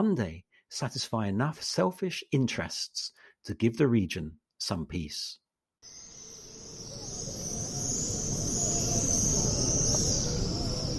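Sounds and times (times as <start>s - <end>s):
speech: 0.0s - 6.0s
swifts returning to nest near the Western Wall in Jerusalem: 5.9s - 10.9s.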